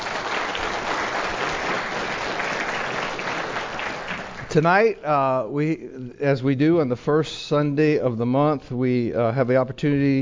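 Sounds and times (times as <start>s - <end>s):
church congregation clapping to welcome visiting guests during a Sunday service: 0.0s - 4.6s
speech: 4.5s - 10.1s.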